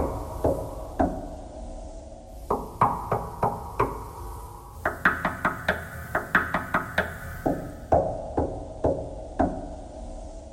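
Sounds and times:
knocking thread noise: 2.5 - 4.1, 4.8 - 9.8.

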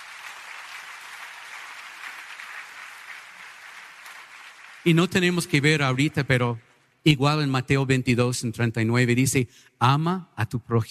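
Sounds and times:
audience applause: 0.0 - 6.2
speech: 4.8 - 10.8.

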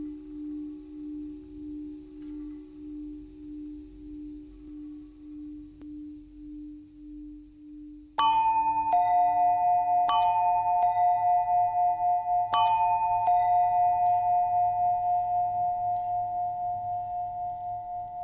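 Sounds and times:
long bell bend threads: 8.2 - 18.2.

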